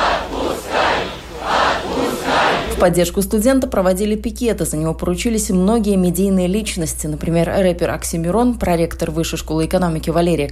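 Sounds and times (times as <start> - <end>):
rally crowd chanting: 0.0 - 3.0
speech: 2.8 - 10.5.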